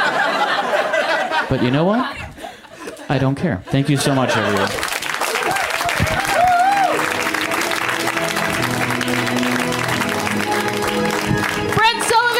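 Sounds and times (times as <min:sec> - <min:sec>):
laughter: 0:00.0 - 0:11.6
speech: 0:01.5 - 0:02.2, 0:03.1 - 0:04.9
audience clapping: 0:04.2 - 0:12.3.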